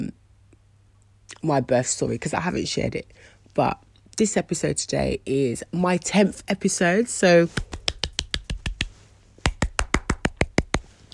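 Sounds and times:
speech: 1.4s - 7.8s
small hand clap: 7.5s - 10.9s.

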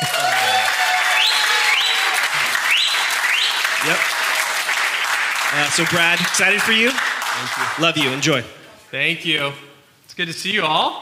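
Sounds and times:
large audience clapping: 0.0s - 8.6s
speech: 5.7s - 11.0s.

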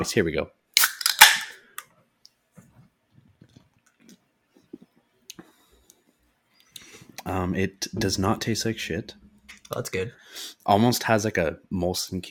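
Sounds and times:
speech: 0.0s - 0.6s, 7.3s - 12.2s
beverage can opening with a pop and fizz: 0.8s - 1.6s.

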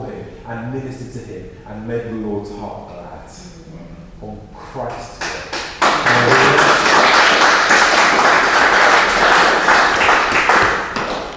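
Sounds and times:
speech: 0.5s - 3.6s, 4.2s - 5.3s
audience clapping: 4.9s - 11.3s.

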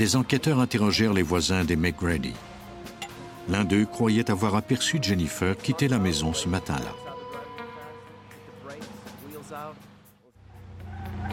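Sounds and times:
speech: 0.0s - 2.6s, 3.5s - 7.0s
car engine revving and pulling away: 10.4s - 11.3s
tires screeching: 10.4s - 11.3s.

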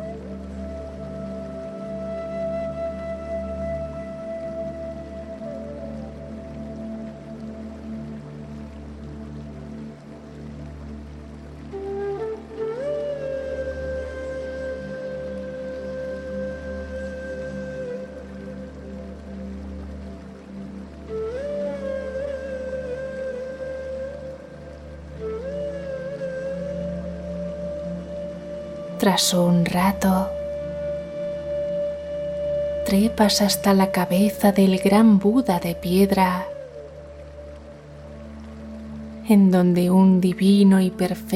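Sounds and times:
waterfall rushing: 0.0s - 41.3s
speech: 29.0s - 30.4s, 32.9s - 36.5s, 39.3s - 41.3s.

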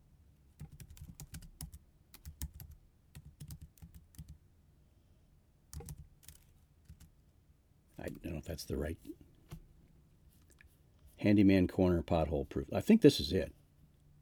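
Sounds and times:
quiet typing on a computer keyboard: 0.6s - 4.4s, 5.7s - 7.1s
speech: 8.0s - 9.2s, 11.2s - 13.6s.

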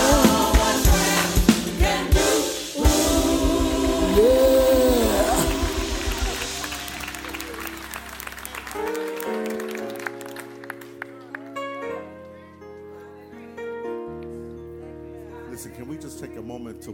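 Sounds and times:
sustained musical tones: 0.1s - 9.7s
church congregation clapping in rhythm: 3.9s - 11.7s.

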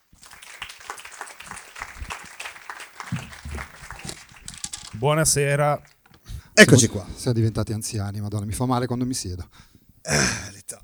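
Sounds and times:
audience applause: 0.0s - 5.1s
speech: 5.0s - 5.9s, 6.6s - 10.4s.

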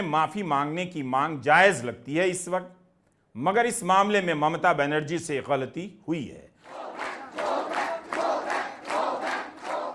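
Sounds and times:
speech: 0.0s - 2.8s, 3.4s - 6.5s
junior doctors at National Medical College chanting a slogan: 6.6s - 9.9s.

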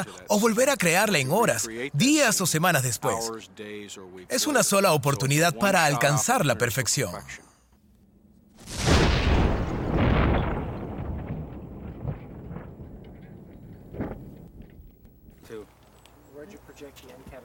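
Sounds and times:
speech: 0.0s - 7.5s
pipe bomb explosion: 8.6s - 14.8s.

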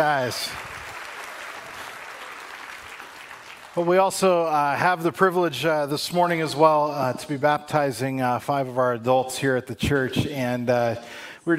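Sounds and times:
speech: 0.0s - 0.7s, 3.8s - 11.5s
audience applause at a church service: 0.0s - 4.2s.

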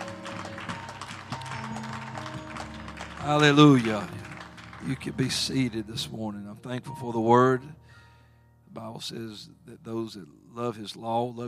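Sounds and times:
audience hand clapping: 0.0s - 5.9s
speech: 3.2s - 4.2s, 4.8s - 7.8s, 8.7s - 11.4s.

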